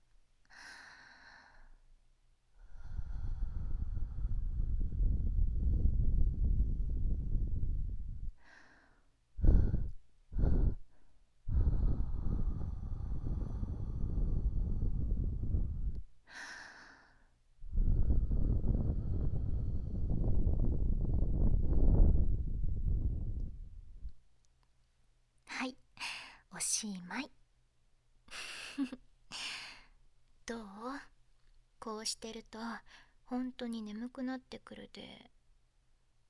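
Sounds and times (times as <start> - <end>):
gentle breath blowing in place of rustling with cotton fluff: 2.6 - 23.8
speech: 26.8 - 27.4, 32.0 - 35.4.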